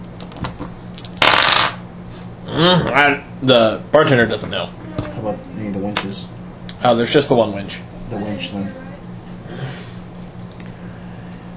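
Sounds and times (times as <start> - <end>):
shilling coin put down on bar: 1.2 - 1.8
speech: 2.6 - 8.9.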